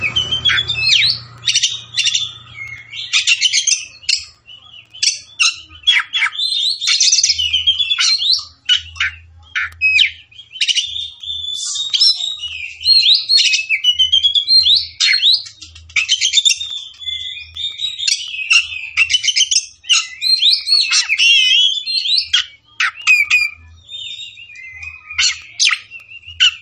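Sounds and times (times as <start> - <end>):
Oriental magpie-robin singing: 0.0 - 26.6.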